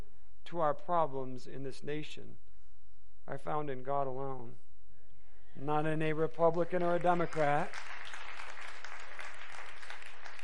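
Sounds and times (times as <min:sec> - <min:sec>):
speech: 0:00.5 - 0:02.5, 0:03.3 - 0:04.6, 0:05.6 - 0:08.2
applause from a large crowd: 0:07.0 - 0:10.4.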